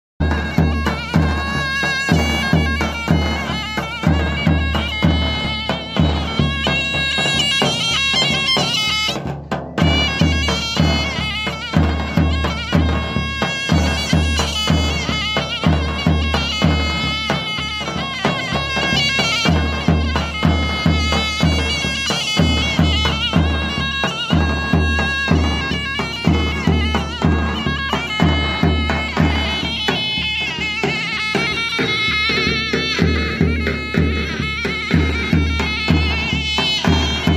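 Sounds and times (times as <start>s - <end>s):
timpani: 0.2s - 37.3s.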